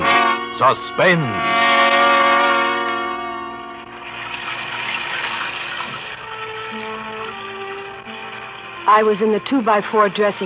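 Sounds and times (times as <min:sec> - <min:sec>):
sustained ringing tonal chord: 0:00.0 - 0:04.7, 0:05.7 - 0:10.4
speech: 0:00.6 - 0:01.7, 0:08.9 - 0:10.4
heavy rain beating down on a skylight: 0:04.0 - 0:09.9.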